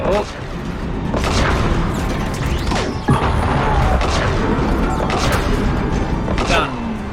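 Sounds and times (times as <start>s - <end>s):
speech: 0.1s - 0.4s
video game gunfire from computer-controlled soldiers: 1.1s - 6.9s.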